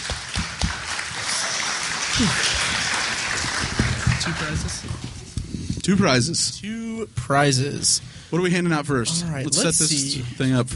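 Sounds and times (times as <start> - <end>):
audience applause: 0.0 - 5.2
speech: 2.2 - 2.6, 4.2 - 5.0, 5.8 - 10.7.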